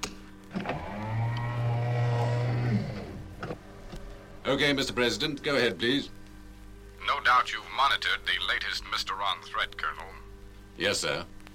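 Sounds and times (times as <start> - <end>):
powered sound doors closing: 0.5 - 4.4
speech: 4.5 - 6.2, 7.1 - 10.0, 10.8 - 11.4.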